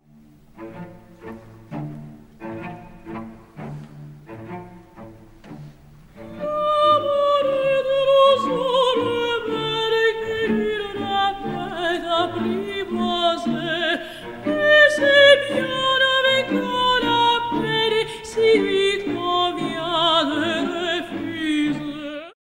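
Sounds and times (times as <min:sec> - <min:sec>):
mezzo-soprano singing: 0:06.2 - 0:22.4.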